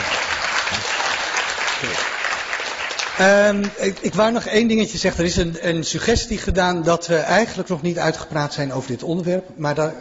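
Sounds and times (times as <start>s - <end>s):
loud audience applause: 0.0s - 3.7s
speech: 1.8s - 2.1s, 3.2s - 10.0s.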